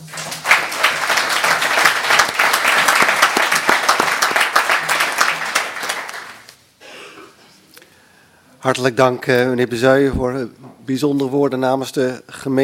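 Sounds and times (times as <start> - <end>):
council chamber applause: 0.0 - 6.5
speech: 8.6 - 12.6.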